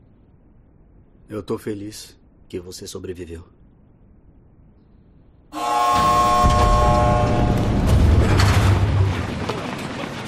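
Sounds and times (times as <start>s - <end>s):
speech: 1.3s - 3.6s
heavy door grinding open: 5.9s - 10.1s.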